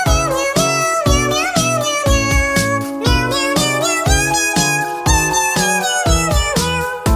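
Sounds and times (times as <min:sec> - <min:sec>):
cat meowing: 0:00.1 - 0:07.0.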